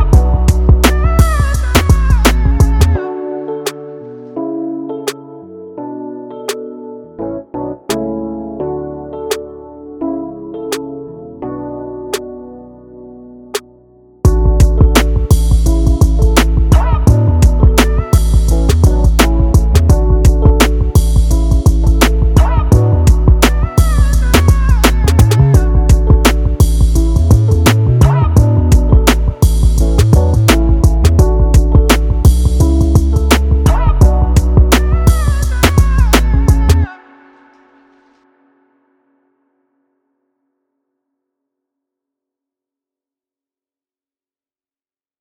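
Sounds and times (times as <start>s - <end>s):
music beat: 0.0s - 3.9s, 14.3s - 36.9s.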